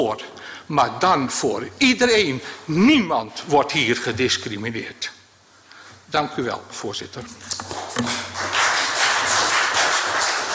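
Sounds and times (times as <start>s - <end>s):
speech: 0.0s - 5.2s, 6.1s - 8.2s
applause in a council chamber: 7.5s - 10.5s.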